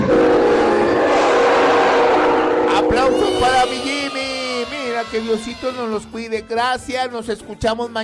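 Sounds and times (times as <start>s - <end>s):
train whistle: 0.1s - 4.2s
speech: 5.1s - 8.0s.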